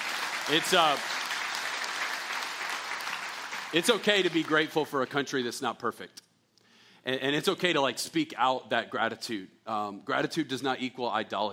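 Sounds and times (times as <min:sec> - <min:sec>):
audience clapping: 0:00.0 - 0:05.1
speech: 0:00.5 - 0:01.2, 0:03.7 - 0:06.2, 0:07.0 - 0:11.5.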